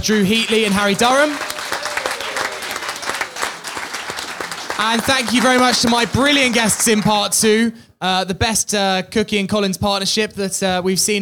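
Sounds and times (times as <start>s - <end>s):
speech: 0.0s - 1.5s, 4.8s - 11.2s
audience applause: 0.2s - 7.4s.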